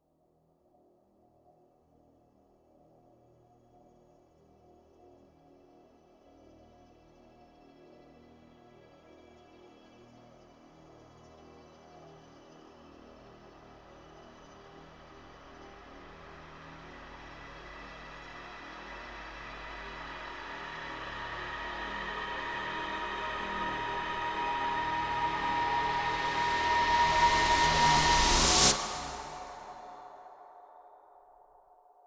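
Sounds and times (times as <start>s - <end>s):
horror music build-up: 14.8s - 30.6s.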